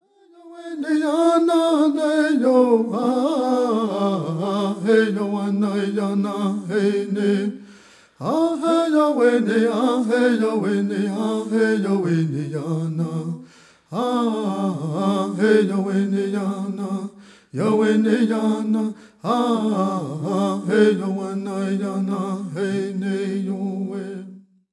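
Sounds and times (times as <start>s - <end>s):
prayer song: 0.0s - 24.6s.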